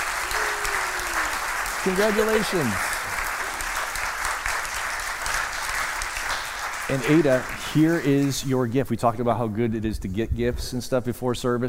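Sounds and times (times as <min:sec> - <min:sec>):
audience applause: 0:00.0 - 0:08.5
speech: 0:01.8 - 0:02.9, 0:06.9 - 0:11.6.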